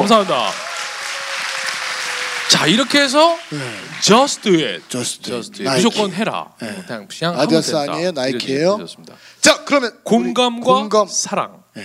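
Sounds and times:
speech: 0.0 - 0.6, 2.5 - 11.8
audience applause: 0.0 - 5.2.

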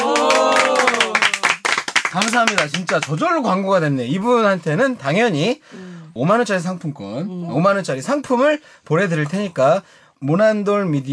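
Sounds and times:
brisk hand clapping: 0.0 - 3.3
speech: 2.1 - 11.1.

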